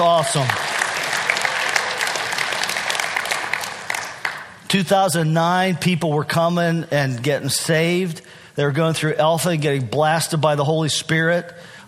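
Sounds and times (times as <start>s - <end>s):
speech: 0.0s - 0.7s, 4.7s - 11.8s
audience applause: 0.0s - 4.6s.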